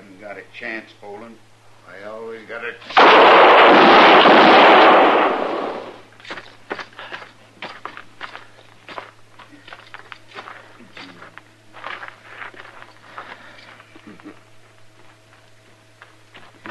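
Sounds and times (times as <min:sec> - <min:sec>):
speech: 0:00.2 - 0:05.4
gunfire in a western gunfight: 0:02.9 - 0:06.0.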